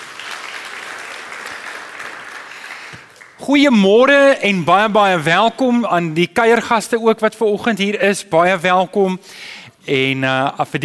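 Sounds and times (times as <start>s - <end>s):
audience clapping hands: 0.0s - 3.5s
speech: 3.4s - 10.8s.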